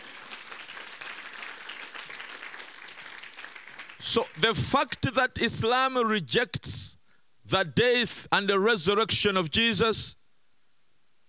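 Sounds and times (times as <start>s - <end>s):
audience clapping: 0.0s - 5.0s
speech: 4.0s - 10.2s.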